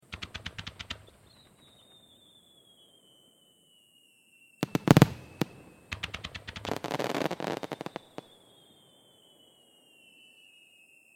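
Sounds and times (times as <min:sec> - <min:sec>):
fireworks rapid fire: 0:00.0 - 0:02.9, 0:04.6 - 0:08.7.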